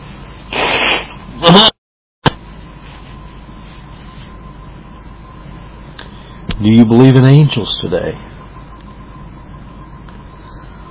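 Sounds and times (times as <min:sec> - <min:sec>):
person blowing nose: 0:00.5 - 0:01.1
speech: 0:01.5 - 0:01.8, 0:06.7 - 0:08.4.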